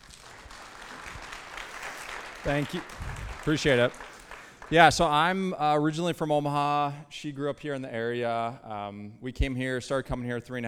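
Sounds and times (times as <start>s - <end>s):
audience applause: 0.0s - 5.1s
speech: 2.4s - 4.1s, 4.7s - 10.6s.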